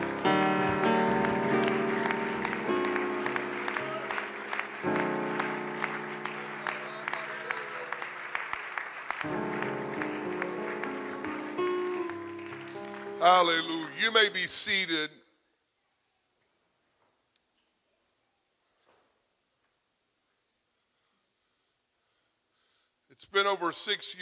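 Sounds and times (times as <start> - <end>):
audience clapping hands in praise: 0.0 - 14.5
organ chords: 0.0 - 15.1
speech: 13.3 - 15.2, 23.6 - 24.2.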